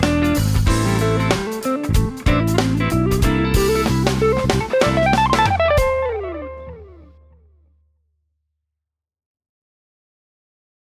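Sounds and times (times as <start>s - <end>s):
neo-soul solo: 0.0s - 7.5s.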